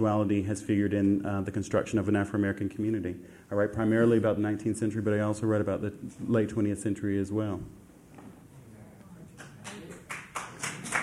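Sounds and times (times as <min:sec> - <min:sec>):
speech: 0:00.0 - 0:07.8
audience applause: 0:09.4 - 0:11.0.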